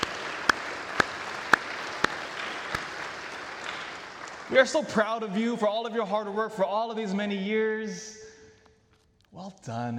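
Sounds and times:
round of applause: 0:00.0 - 0:05.4
speech: 0:04.5 - 0:08.2, 0:09.4 - 0:09.9.

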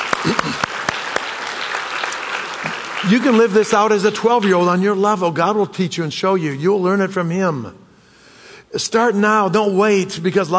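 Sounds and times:
congregation clapping hands during a church sermon: 0:00.0 - 0:05.6
speech: 0:03.0 - 0:07.8, 0:08.7 - 0:10.5.

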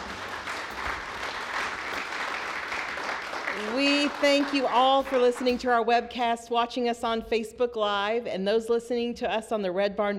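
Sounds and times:
studio audience applause: 0:00.0 - 0:05.5
speech: 0:03.6 - 0:10.1.

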